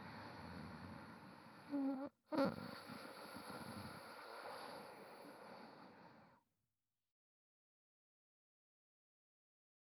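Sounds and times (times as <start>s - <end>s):
sleeping breath: 0.0s - 6.4s.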